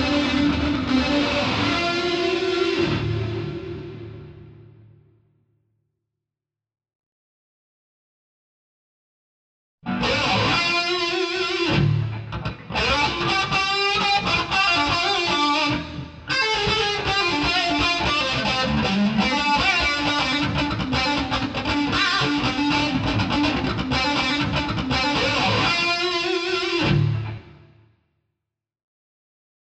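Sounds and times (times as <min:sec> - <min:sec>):
guitar solo: 0:00.0 - 0:04.8, 0:09.8 - 0:27.6.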